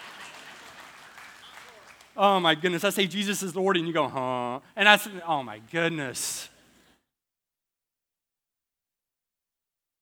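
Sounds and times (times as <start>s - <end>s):
audience applause: 0.0s - 3.2s
speech: 2.2s - 6.5s.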